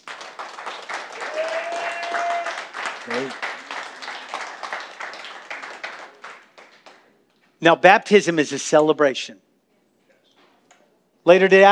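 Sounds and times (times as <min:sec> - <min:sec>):
audience applause: 0:00.0 - 0:07.1
speech: 0:03.1 - 0:03.4, 0:07.6 - 0:09.5, 0:11.2 - 0:11.7.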